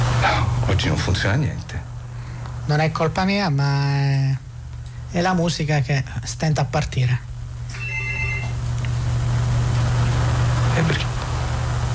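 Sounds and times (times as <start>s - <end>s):
low hum and hiss: 0.0s - 11.9s
speech: 0.8s - 1.9s, 2.7s - 4.4s, 5.1s - 7.3s
telephone ringing: 7.7s - 8.6s.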